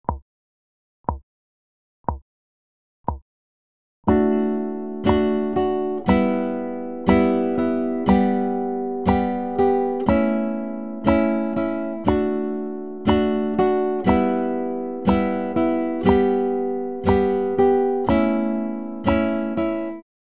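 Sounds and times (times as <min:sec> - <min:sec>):
instrument strumming: 0:04.1 - 0:20.0.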